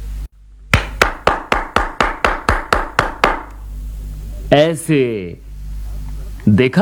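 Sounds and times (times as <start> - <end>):
audience clapping hands: 0.8 - 3.5
speech: 4.5 - 5.4, 6.4 - 6.7.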